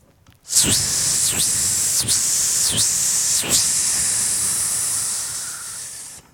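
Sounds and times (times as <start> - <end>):
cicada buzzing: 0.5 - 6.3.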